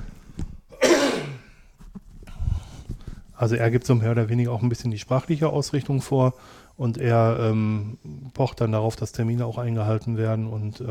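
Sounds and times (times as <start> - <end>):
raspy throat clearing: 0.7 - 1.6
speech: 3.4 - 10.8.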